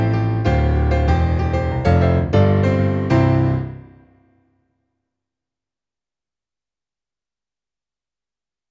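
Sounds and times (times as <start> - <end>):
digital piano grand piano demo song: 0.0 - 4.0.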